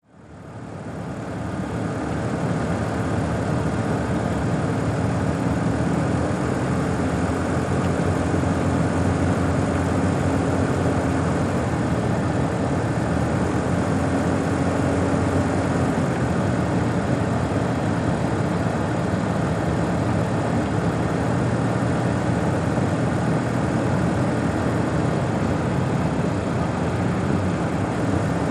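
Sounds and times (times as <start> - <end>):
sedan driving and stopping: 0.5 - 28.4.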